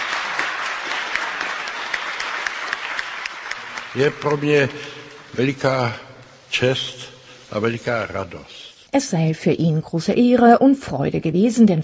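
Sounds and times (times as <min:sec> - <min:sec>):
audience clapping: 0:00.0 - 0:06.5
speech: 0:03.9 - 0:11.8.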